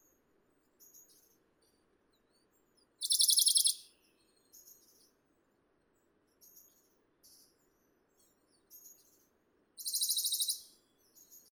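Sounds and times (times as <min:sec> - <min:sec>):
Bonelli's warbler Phylloscopus bonelli singing: 0:03.0 - 0:03.8, 0:09.8 - 0:10.6.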